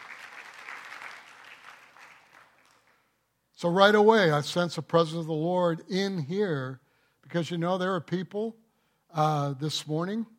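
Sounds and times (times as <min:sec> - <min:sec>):
audience applause: 0:00.0 - 0:03.0
speech: 0:03.6 - 0:10.3.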